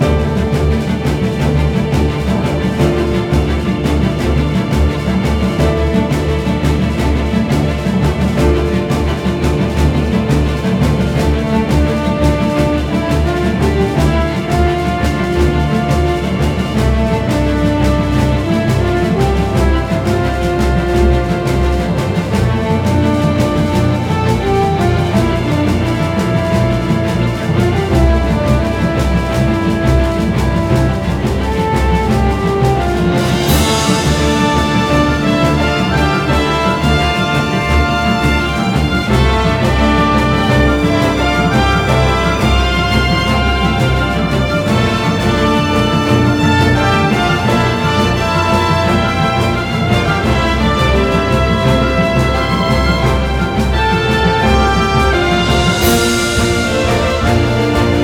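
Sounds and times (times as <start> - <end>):
normal battle music loop: 0.0 - 58.0.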